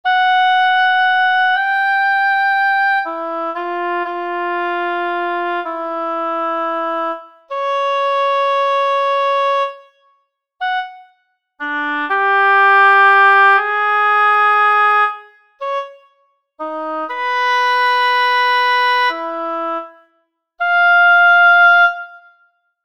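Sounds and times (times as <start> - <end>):
oboe: 0.0 - 10.0, 10.6 - 22.5.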